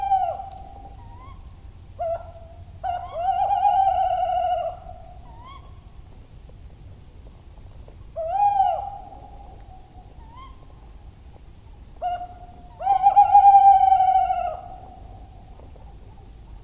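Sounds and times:
tawny owl calling: 0:00.0 - 0:05.8, 0:08.2 - 0:10.7, 0:12.0 - 0:15.2.

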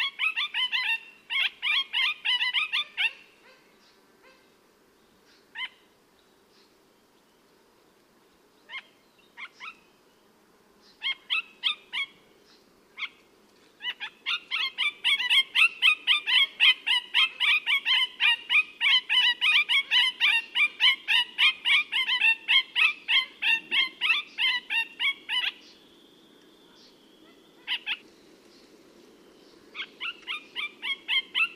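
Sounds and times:
parakeet calls: 0:00.0 - 0:04.5, 0:05.5 - 0:05.9, 0:08.7 - 0:09.9, 0:11.0 - 0:12.2, 0:13.0 - 0:13.2, 0:13.8 - 0:25.9, 0:26.7 - 0:28.0, 0:29.4 - 0:31.5.

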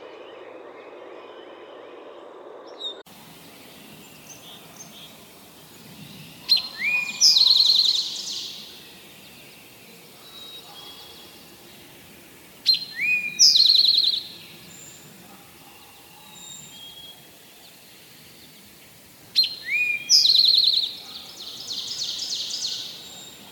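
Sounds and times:
towhee calling: 0:02.8 - 0:23.5.

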